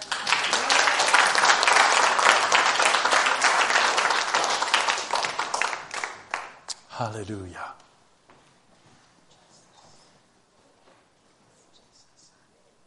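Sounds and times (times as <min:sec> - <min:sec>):
crowd applause: 0:00.0 - 0:06.6
speech: 0:07.0 - 0:07.7.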